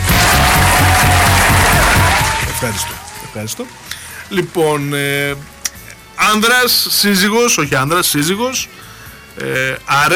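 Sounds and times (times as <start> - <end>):
crowd applause: 0.0 - 4.5
speech: 2.6 - 5.6, 6.2 - 8.8, 9.4 - 10.1.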